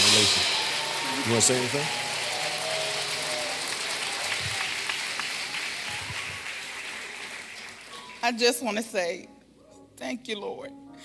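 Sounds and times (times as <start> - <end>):
crowd applause: 0.0 - 8.2
speech: 1.3 - 2.1, 8.3 - 9.4, 10.0 - 11.0.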